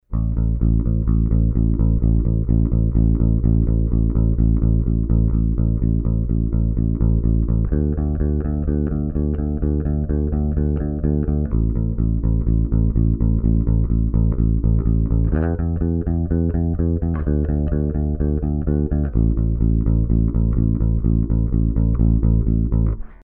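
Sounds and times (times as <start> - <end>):
bass: 0.0 - 23.2.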